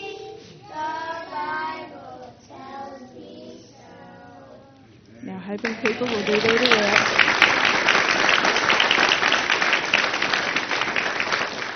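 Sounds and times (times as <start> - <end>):
speech: 5.3 - 7.3
crowd applauding: 5.6 - 11.7.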